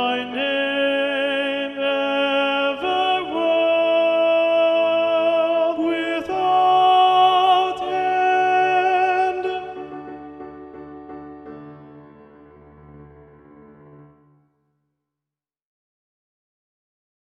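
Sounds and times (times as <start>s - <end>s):
soprano and tenor singing a hymn: 0.0s - 10.8s.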